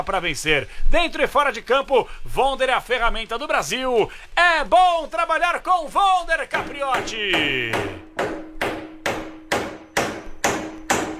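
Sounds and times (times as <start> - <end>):
speech: 0.0 - 8.4
hammer striking in musical rhythm: 6.5 - 11.1.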